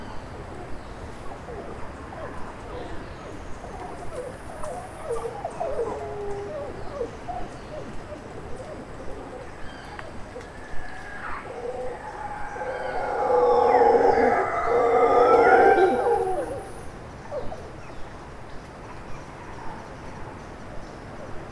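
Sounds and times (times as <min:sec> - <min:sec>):
mantled howler Alouatta palliata howling: 0:01.5 - 0:17.5.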